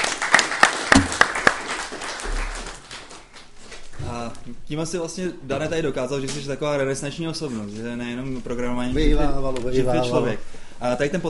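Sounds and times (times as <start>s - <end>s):
crowd applause: 0.0s - 3.4s
crisp hand claps: 0.0s - 3.5s
speech: 4.5s - 11.2s.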